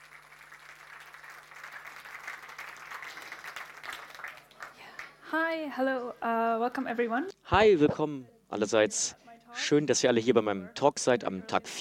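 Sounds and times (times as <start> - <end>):
audience applause: 0.0 - 5.2
speech: 5.3 - 11.7.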